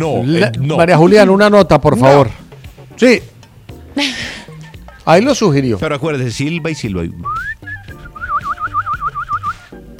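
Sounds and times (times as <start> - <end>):
speech: 0.0 - 2.4, 3.0 - 3.3, 4.0 - 4.4, 5.1 - 7.5
person whistling: 7.2 - 9.8.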